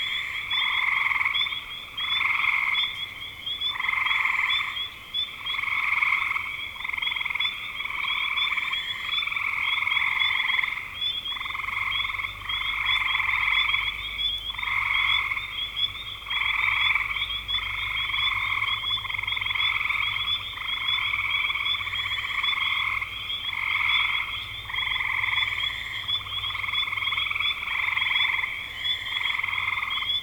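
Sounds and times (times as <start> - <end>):
frogs calling in chorus: 0.0 - 30.2.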